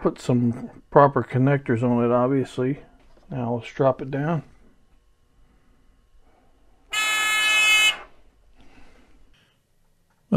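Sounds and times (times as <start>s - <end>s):
speech: 0.0s - 4.5s
electronic buzzer blaring: 6.9s - 8.2s.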